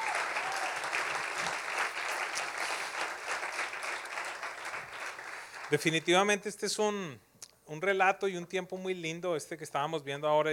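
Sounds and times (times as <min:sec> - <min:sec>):
audience applause: 0:00.0 - 0:06.1
speech: 0:05.7 - 0:10.5.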